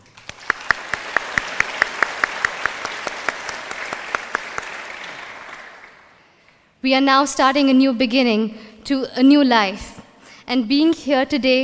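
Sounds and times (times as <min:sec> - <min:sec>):
graduation ceremony applause: 0:00.0 - 0:06.3
speech: 0:06.8 - 0:09.9, 0:10.5 - 0:11.6.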